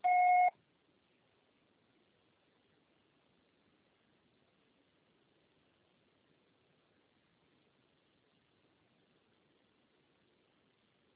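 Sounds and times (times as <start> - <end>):
voicemail recording beep: 0.0 - 0.6.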